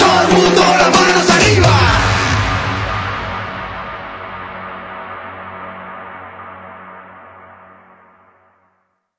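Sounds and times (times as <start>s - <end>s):
EDM a cappella vocals: 0.0s - 2.9s.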